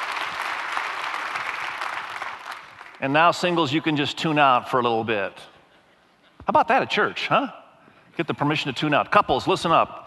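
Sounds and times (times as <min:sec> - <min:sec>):
audience applause: 0:00.0 - 0:03.7
speech: 0:03.0 - 0:05.5, 0:06.5 - 0:07.6, 0:08.2 - 0:10.0.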